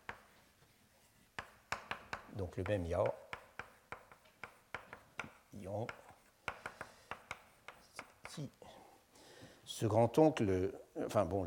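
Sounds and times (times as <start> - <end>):
faint writing sounds of a name being written during a lecture: 0.0 - 8.9
speech: 2.4 - 3.2, 5.6 - 6.0, 8.4 - 8.8, 9.7 - 11.4.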